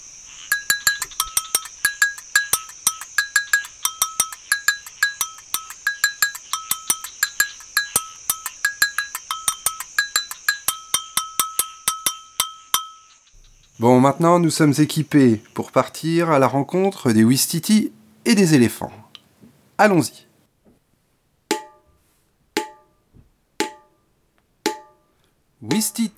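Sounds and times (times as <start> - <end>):
agogo bell played in batucada rhythm: 0.5 - 13.1
speech: 13.8 - 19.0, 19.8 - 20.3.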